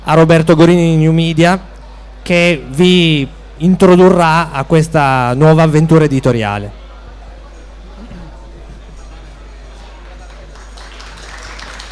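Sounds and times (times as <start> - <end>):
speech: 0.1 - 6.8
audience applause: 10.0 - 11.9.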